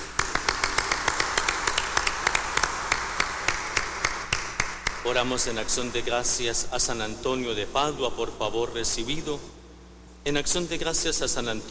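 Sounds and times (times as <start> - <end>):
audience applause: 0.0 - 5.1
speech: 5.0 - 9.6, 10.2 - 11.6.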